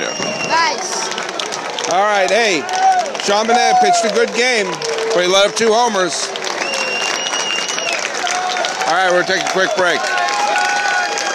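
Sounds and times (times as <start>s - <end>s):
stadium crowd applauding: 0.0s - 11.3s
speech: 1.9s - 6.4s, 8.9s - 10.2s.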